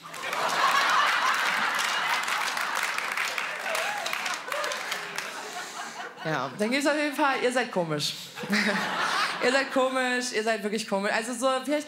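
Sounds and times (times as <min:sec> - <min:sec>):
audience applause: 0:00.0 - 0:06.1
laughter: 0:00.0 - 0:06.6, 0:08.4 - 0:10.0
speech: 0:06.2 - 0:11.8.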